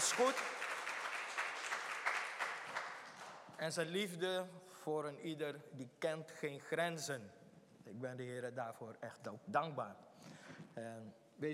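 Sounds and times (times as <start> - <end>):
church congregation clapping to welcome a visitor: 0.0 - 3.6
speech: 0.2 - 0.7, 3.6 - 11.5.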